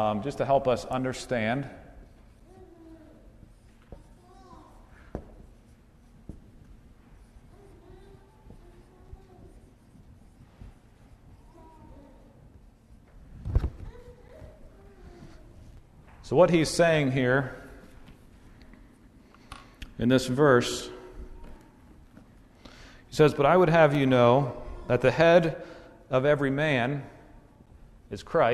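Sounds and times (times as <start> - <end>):
speech: 0.0 - 1.8, 16.3 - 17.6, 20.0 - 21.0, 23.1 - 27.2, 28.1 - 28.5
marker strokes on a board: 2.1 - 15.6.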